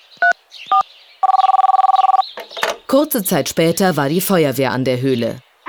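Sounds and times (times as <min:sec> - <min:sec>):
dual-tone phone key beeps dialing an emergency call: 0:00.2 - 0:02.2
speech: 0:02.9 - 0:05.5.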